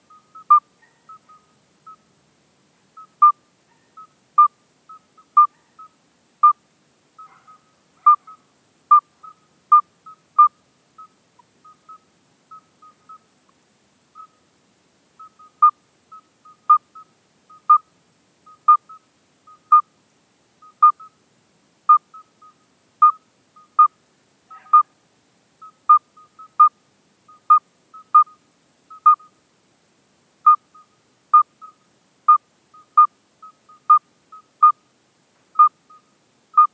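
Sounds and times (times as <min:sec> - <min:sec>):
midwife toad Alytes obstetricans calling: 0:00.0 - 0:02.0, 0:03.0 - 0:06.6, 0:07.2 - 0:13.3, 0:14.2 - 0:14.4, 0:15.2 - 0:17.9, 0:18.5 - 0:20.0, 0:20.6 - 0:21.2, 0:21.9 - 0:25.0, 0:25.6 - 0:29.4, 0:30.4 - 0:34.9, 0:35.6 - 0:36.7.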